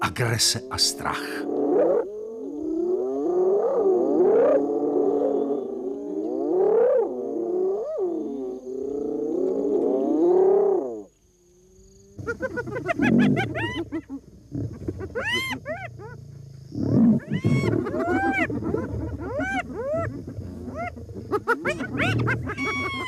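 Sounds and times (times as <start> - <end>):
speech: 0.0 - 1.5
four hyenas roaring and calling aggressively: 1.0 - 11.1, 12.2 - 23.0
hyenas whooping and cackling in a frantic chorus: 3.0 - 5.7, 6.4 - 8.5, 12.2 - 23.0.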